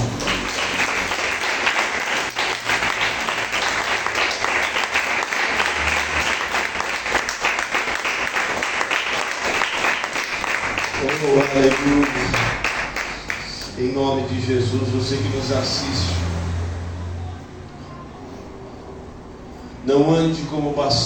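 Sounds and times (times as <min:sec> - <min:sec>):
audience applauding: 0:00.0 - 0:13.8
speech: 0:14.0 - 0:16.3, 0:19.9 - 0:21.0.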